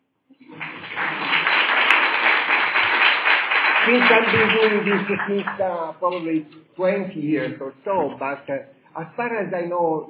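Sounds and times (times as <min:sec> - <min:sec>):
small audience applause: 0:00.4 - 0:05.9
speech: 0:03.9 - 0:10.0.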